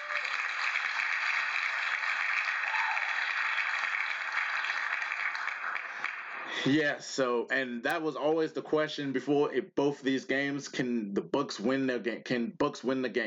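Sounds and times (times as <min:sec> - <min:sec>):
applause: 0:00.0 - 0:06.7
speech: 0:06.6 - 0:13.2.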